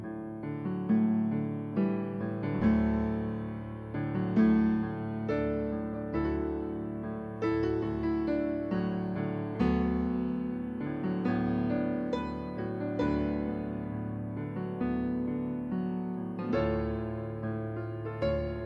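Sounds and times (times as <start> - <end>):
piano piece: 0.0 - 18.6.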